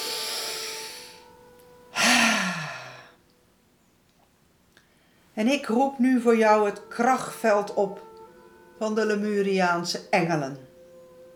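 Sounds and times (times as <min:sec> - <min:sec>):
deep breath in: 0:00.0 - 0:01.3, 0:02.0 - 0:03.2
quiet sustained tones: 0:00.0 - 0:04.0, 0:05.0 - 0:11.3
soft voiced sigh: 0:02.0 - 0:03.1
speech: 0:05.4 - 0:08.1, 0:08.8 - 0:10.6.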